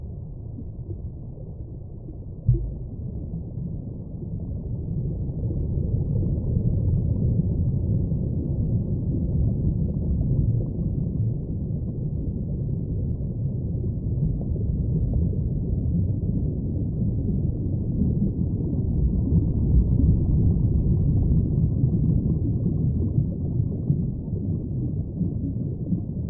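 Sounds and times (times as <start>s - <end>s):
underwater rumble ambience: 0.0s - 26.2s.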